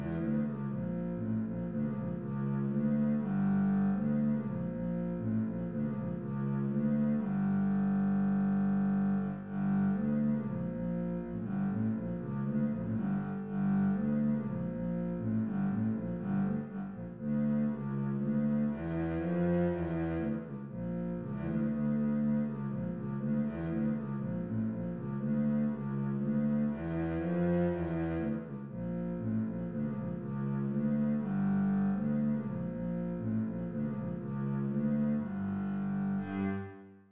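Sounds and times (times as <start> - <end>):
bulgarish bass line: 0.0 - 37.0.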